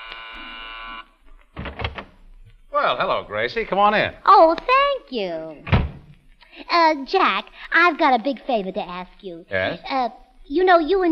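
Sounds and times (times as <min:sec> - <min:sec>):
door buzzer buzzing: 0:00.0 - 0:01.8
speech: 0:02.8 - 0:05.8, 0:06.6 - 0:11.1.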